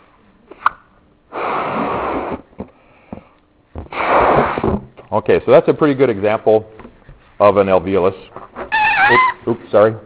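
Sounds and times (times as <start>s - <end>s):
balloon being blown up by mouth: 1.3s - 2.7s, 3.8s - 4.9s, 8.7s - 9.4s
speech: 5.1s - 6.8s, 7.4s - 8.4s, 9.0s - 10.0s
small squeaky clicks: 8.6s - 9.4s.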